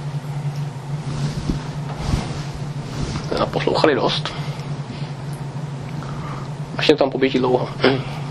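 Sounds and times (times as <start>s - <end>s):
sun's heartbeat, sped up: 0.1s - 5.8s
speech: 3.3s - 4.5s, 6.8s - 8.2s.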